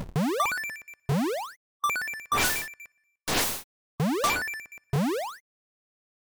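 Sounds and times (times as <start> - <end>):
8-bit ambience: 0.2 - 2.9, 4.0 - 5.4.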